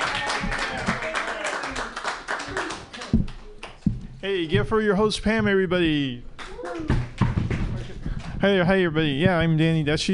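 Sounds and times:
voices cheering: 0.0s - 2.7s
crowd clapping: 0.0s - 3.8s, 6.4s - 8.4s
speech: 4.2s - 7.0s, 8.4s - 10.1s.

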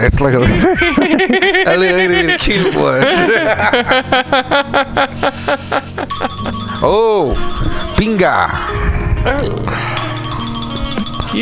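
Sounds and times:
speech: 0.0s - 10.0s
laughter: 0.4s - 6.8s
phone notification alert chime: 6.1s - 8.7s, 9.7s - 11.4s.

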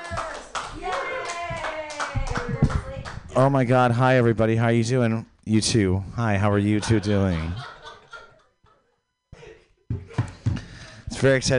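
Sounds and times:
audience clapping for a comedian at an open mic: 0.0s - 3.3s
speech: 3.4s - 7.7s, 11.2s - 11.5s
laughter: 6.4s - 10.8s.

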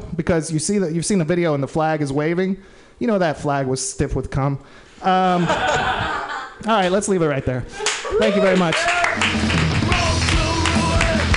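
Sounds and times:
speech: 0.2s - 6.0s, 6.6s - 9.6s
laughter: 5.2s - 6.6s
audience clapping: 7.8s - 11.3s.

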